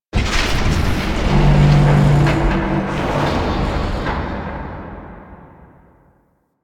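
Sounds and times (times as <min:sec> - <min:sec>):
void dragon moving: 0:00.2 - 0:05.4.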